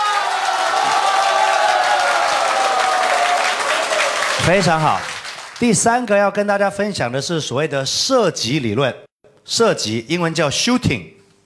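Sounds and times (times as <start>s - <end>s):
audience applause: 0.0s - 5.8s
speech: 4.5s - 11.2s.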